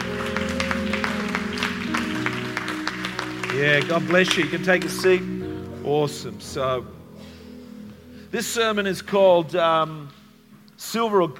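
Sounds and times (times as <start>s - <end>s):
audience clapping: 0.0s - 5.4s
speech: 3.6s - 7.0s, 8.3s - 10.2s, 10.8s - 11.3s.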